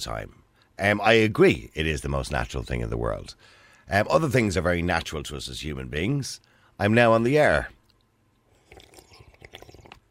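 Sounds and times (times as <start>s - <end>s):
speech: 0.0s - 7.8s
person sipping and gulping water: 7.8s - 10.0s.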